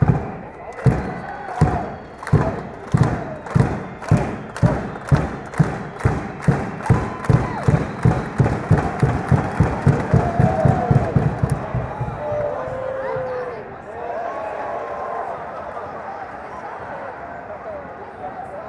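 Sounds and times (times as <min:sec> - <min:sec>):
clapping: 0:00.0 - 0:12.8
drumming: 0:00.0 - 0:13.4.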